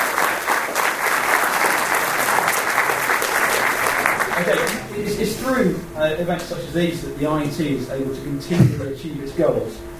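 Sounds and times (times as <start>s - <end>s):
audience applause: 0.0s - 4.9s
speech: 4.4s - 9.9s.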